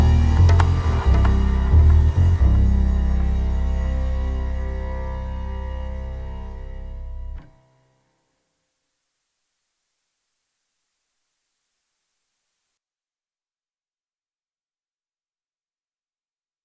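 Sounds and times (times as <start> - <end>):
ambient suspense music: 0.0 - 7.6.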